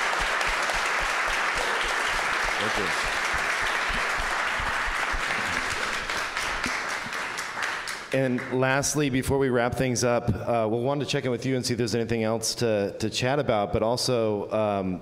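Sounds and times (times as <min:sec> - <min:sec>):
audience applause: 0:00.0 - 0:08.6
speech: 0:02.6 - 0:03.2, 0:08.1 - 0:15.0.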